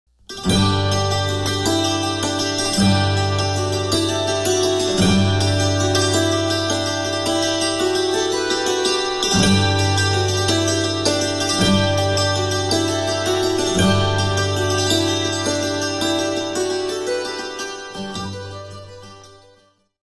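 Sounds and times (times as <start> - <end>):
jig tune: 0.3 - 19.4.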